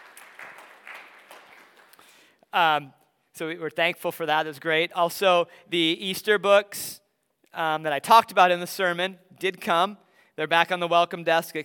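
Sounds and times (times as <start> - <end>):
audience round of applause: 0.0 - 2.1
speech: 2.5 - 7.0, 7.6 - 11.6.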